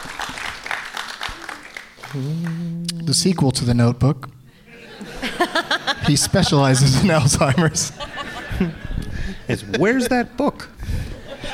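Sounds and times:
audience applause: 0.0s - 2.7s
speech: 2.1s - 4.4s, 5.4s - 10.8s
laughter: 4.6s - 11.5s.

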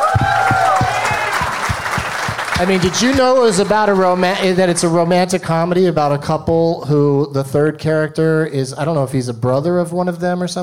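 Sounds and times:
live audience applauding: 0.0s - 5.4s
people whooping and cheering: 0.0s - 5.6s
speech: 2.6s - 10.6s.

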